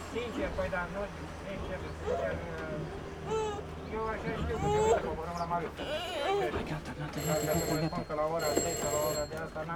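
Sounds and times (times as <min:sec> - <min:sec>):
speech: 0:00.2 - 0:09.7
telephone ringing: 0:07.1 - 0:09.7.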